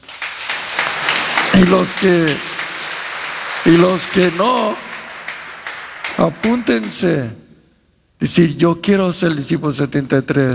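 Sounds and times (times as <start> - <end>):
applause: 0.0 - 7.4
speech: 1.6 - 2.5, 3.6 - 4.9, 6.2 - 7.4, 8.2 - 10.5.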